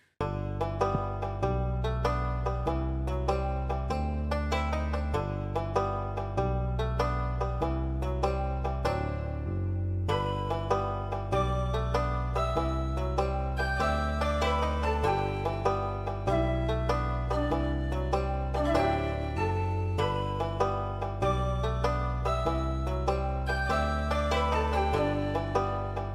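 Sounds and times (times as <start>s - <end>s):
library music: 0.0s - 26.1s.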